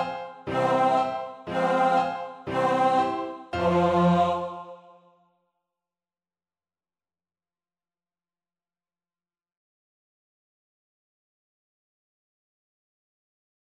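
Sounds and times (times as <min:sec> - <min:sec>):
tenor singing amen: 0:00.0 - 0:04.8.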